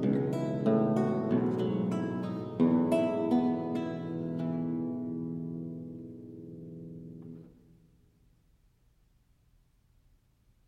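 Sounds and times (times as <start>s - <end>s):
lute minuet and double in F major: 0.0s - 7.6s.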